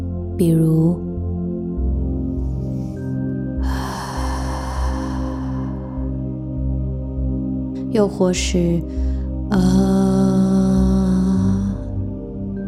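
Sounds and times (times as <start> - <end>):
soft musical drone: 0.0 - 12.6
speech: 0.4 - 1.1, 8.0 - 9.9
breathy exhale through the mouth: 2.4 - 6.6.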